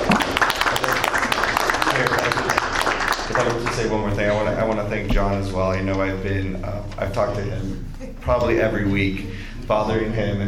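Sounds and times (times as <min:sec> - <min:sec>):
crowd applauding: 0:00.0 - 0:04.1
speech: 0:03.8 - 0:10.4.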